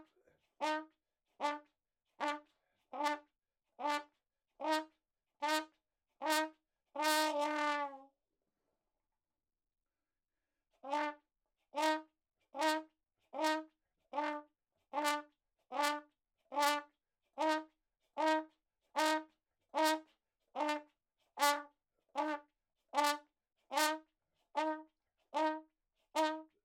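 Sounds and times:
ragtime trumpet playing in a room: 0.0 - 3.2, 3.8 - 8.0, 10.9 - 11.2, 11.8 - 12.0, 12.6 - 14.4, 15.0 - 16.0, 16.6 - 20.0, 20.6 - 20.8, 21.4 - 24.0, 24.6 - 24.8, 25.4 - 25.6, 26.2 - 26.5.

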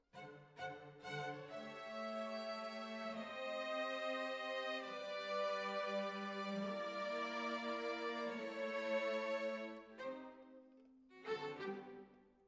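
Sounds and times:
violins: 0.0 - 12.2.

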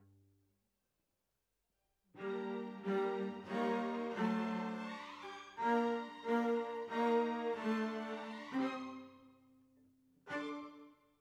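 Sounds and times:
cellos playing: 2.2 - 9.2, 10.3 - 10.8.

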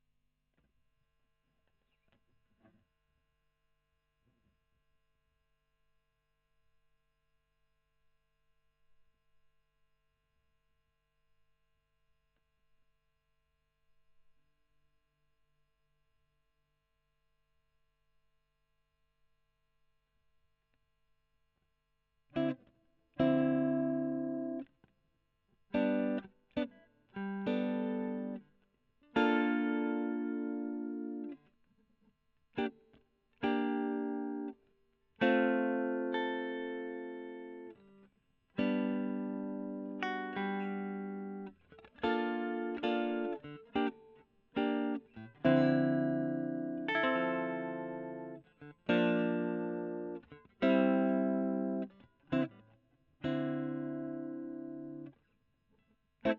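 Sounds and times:
electric guitar: 22.3 - 24.7, 25.7 - 31.5, 32.6 - 55.3.

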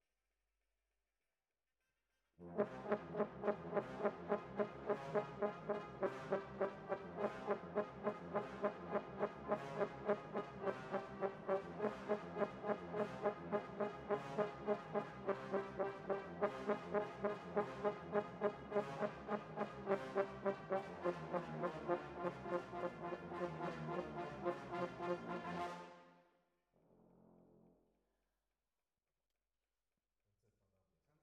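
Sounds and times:
horns: 2.6 - 26.0.

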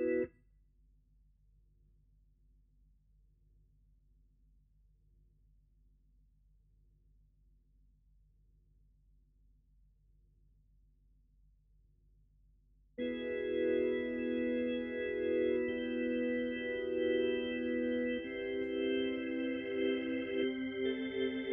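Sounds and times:
Hammond organ: 0.0 - 0.2, 13.0 - 21.5.

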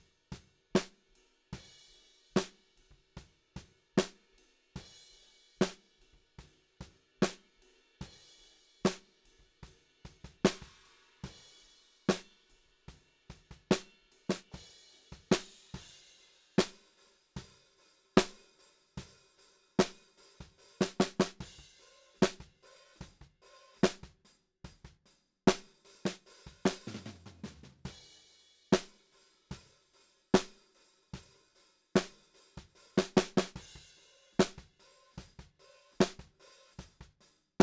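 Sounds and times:
snare drum: 5.6 - 5.8, 7.2 - 7.4, 8.9 - 9.1, 10.3 - 11.4, 12.1 - 12.3, 13.5 - 15.8, 16.6 - 17.6, 18.2 - 19.2, 19.8 - 29.6, 30.4 - 31.4, 32.0 - 37.6.

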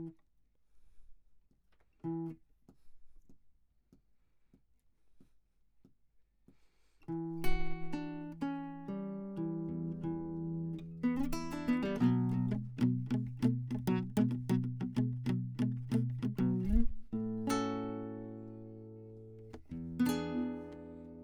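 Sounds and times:
classical guitar: 2.0 - 2.4, 7.1 - 21.2.

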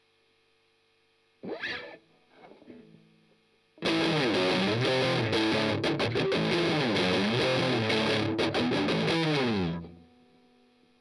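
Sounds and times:
strummed octaves: 3.8 - 10.4.

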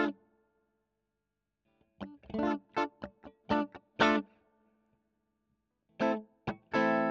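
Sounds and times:
electric guitar: 0.0 - 0.2, 2.0 - 4.4, 6.0 - 7.0.

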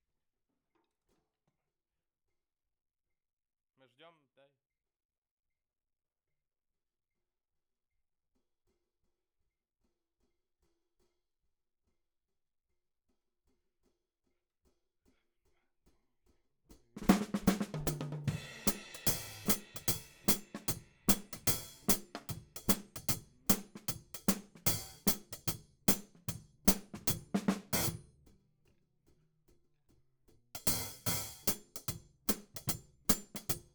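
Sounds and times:
hi-hat: 17.0 - 28.0, 30.6 - 33.7.

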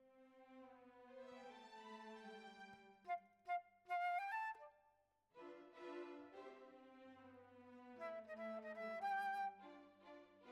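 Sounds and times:
flute: 3.0 - 4.9, 7.8 - 10.2.

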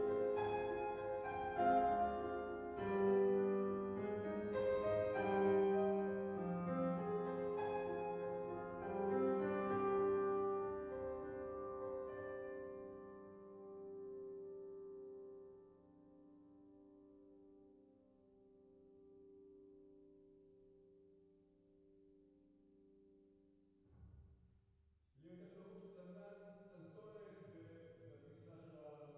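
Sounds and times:
piano: 0.0 - 23.5.

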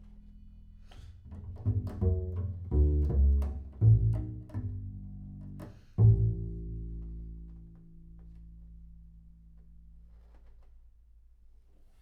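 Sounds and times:
bass sound: 1.3 - 10.0.

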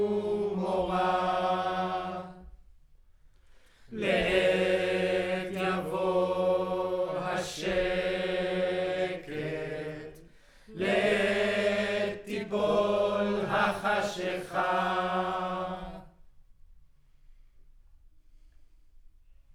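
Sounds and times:
choir recorded with center U47 microphone: 0.0 - 2.7, 3.9 - 16.2.

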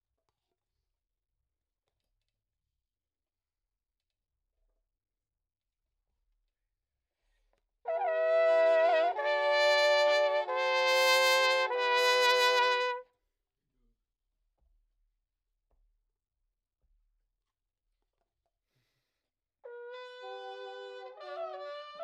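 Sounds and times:
trumpet: 7.9 - 13.1, 19.6 - 22.0.

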